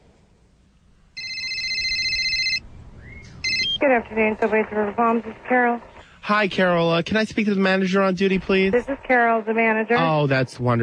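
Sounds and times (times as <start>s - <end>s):
faint low hum: 0.0s - 10.8s
telephone ringing on an outgoing call: 1.2s - 2.6s, 3.4s - 4.3s
speech: 3.8s - 10.8s.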